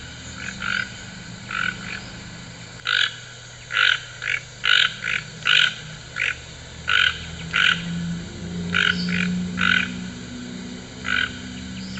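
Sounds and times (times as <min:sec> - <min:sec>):
toucan harsh grating croaks: 0:00.3 - 0:02.1, 0:02.8 - 0:08.0, 0:08.7 - 0:10.0, 0:11.0 - 0:11.9.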